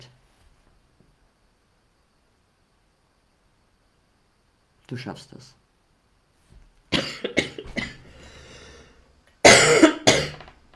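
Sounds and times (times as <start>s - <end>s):
speech: 4.9s - 5.6s
coughing: 6.9s - 8.7s, 9.4s - 10.5s.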